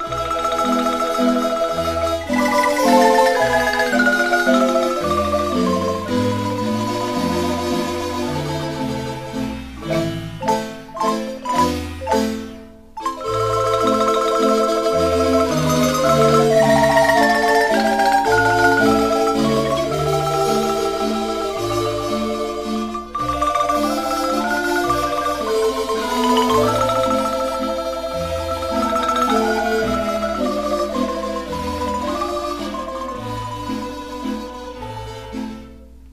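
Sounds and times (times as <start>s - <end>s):
marimba playing a Guanacaste waltz: 0.0s - 36.1s.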